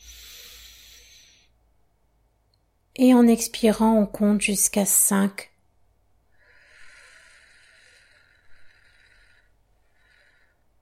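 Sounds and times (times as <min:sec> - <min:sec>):
slow breath in during a breathing exercise: 0:00.0 - 0:01.6, 0:06.4 - 0:10.7
speech: 0:03.0 - 0:05.5.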